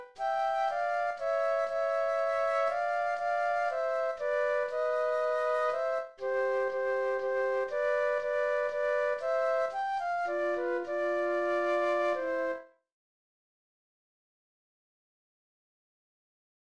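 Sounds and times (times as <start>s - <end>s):
classical flute duet playing a minuet: 0.0s - 12.8s.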